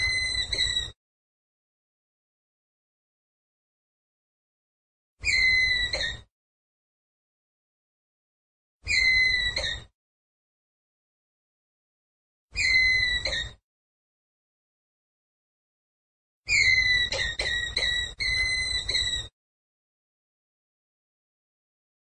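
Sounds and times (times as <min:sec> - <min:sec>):
ground squirrel whistled call: 0:00.0 - 0:01.0, 0:05.2 - 0:06.3, 0:08.9 - 0:09.9, 0:12.6 - 0:13.6, 0:16.5 - 0:19.3.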